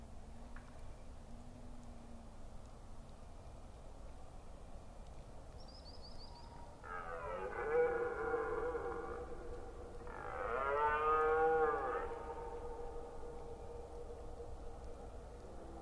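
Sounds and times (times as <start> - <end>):
red deer stag roaring during the rut in Forêt d'Orleans, France: 6.8 - 14.3.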